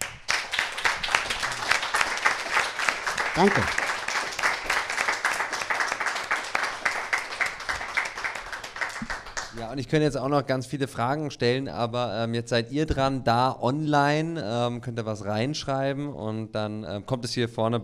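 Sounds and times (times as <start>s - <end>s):
audience applause: 0.0s - 9.7s
speech: 3.4s - 3.8s, 9.6s - 17.8s.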